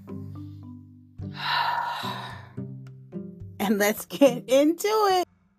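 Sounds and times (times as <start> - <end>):
deep breath drawn in: 1.3 - 2.6
speech: 3.7 - 5.2.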